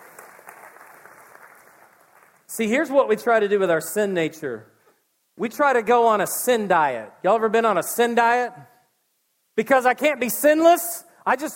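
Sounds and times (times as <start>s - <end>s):
audience round of applause: 0.0s - 2.5s
speech: 2.5s - 4.7s, 5.4s - 8.7s, 9.6s - 11.5s.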